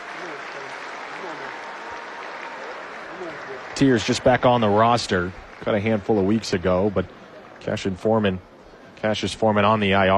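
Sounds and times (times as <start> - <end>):
faint voices and cheers: 0.0 - 5.8
crowd applause in stadium: 0.0 - 8.4
speech: 3.2 - 10.1.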